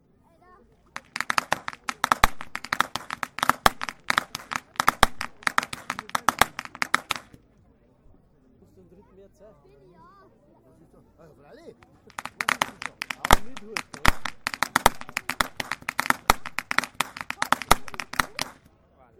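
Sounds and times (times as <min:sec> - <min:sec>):
youth whip cracking: 0:01.0 - 0:07.4, 0:12.1 - 0:18.6.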